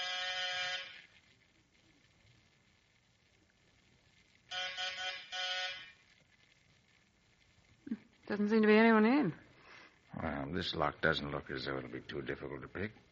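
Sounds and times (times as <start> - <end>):
door bell buzzer ringing: 0.0 - 1.0, 4.5 - 6.0
speech: 8.3 - 9.4, 10.2 - 13.1.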